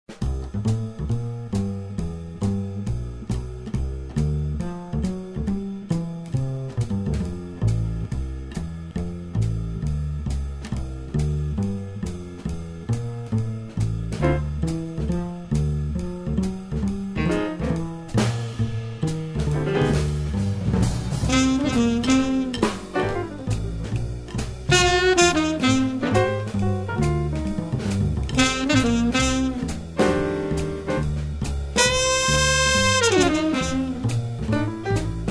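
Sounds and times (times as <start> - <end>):
walking bass line: 0.1 - 35.2.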